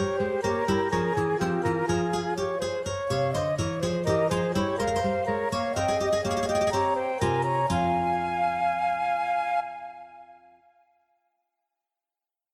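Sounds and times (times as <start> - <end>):
guitars: 0.0 - 8.9
flutes: 0.0 - 11.2.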